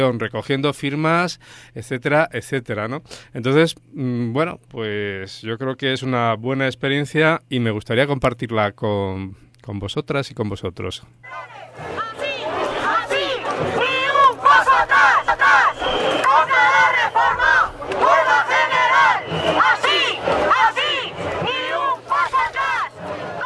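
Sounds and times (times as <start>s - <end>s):
speech: 0.0s - 12.2s, 13.6s - 13.9s
protest crowd shouting and chanting slogans: 11.2s - 23.4s.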